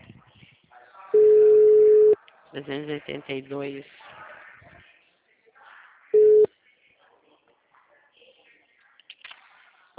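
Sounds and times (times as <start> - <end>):
telephone busy tone after a dropped call: 1.2 - 2.2
speech: 2.6 - 4.0.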